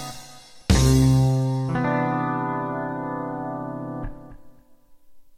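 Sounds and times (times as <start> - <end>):
guitars improvising: 0.7 - 4.7.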